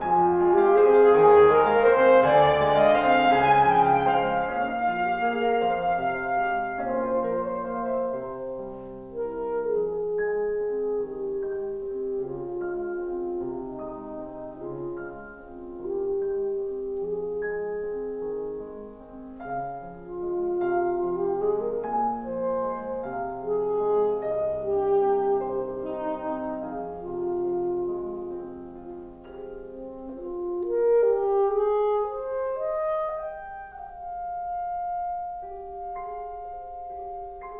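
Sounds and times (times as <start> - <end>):
saxophone: 0.0 - 18.6, 19.4 - 37.5.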